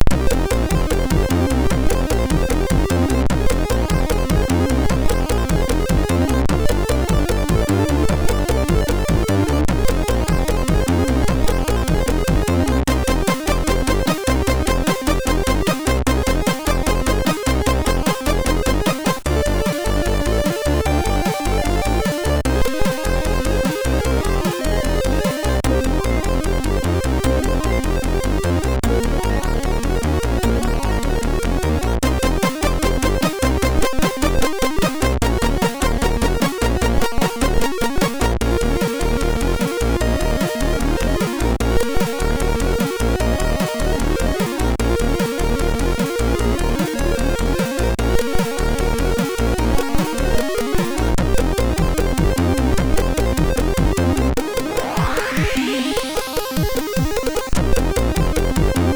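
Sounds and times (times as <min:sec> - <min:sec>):
MOS6581R3 SID chip music: 0:00.0 - 0:58.9.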